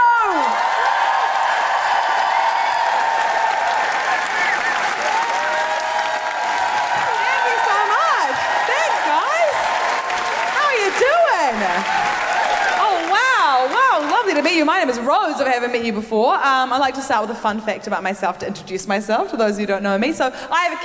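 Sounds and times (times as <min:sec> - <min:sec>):
large crowd applauding: 0:00.2 - 0:15.1
speech: 0:15.6 - 0:20.8.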